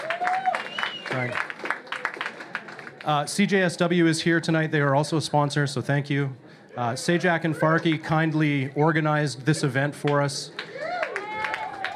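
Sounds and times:
audience applause: 0.0s - 3.2s, 10.6s - 11.9s
speech: 1.2s - 1.5s, 3.0s - 10.6s.

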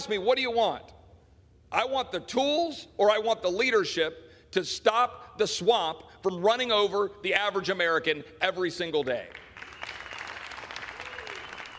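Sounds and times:
speech: 0.0s - 0.9s, 1.7s - 9.4s
smattering of applause: 9.3s - 11.7s.

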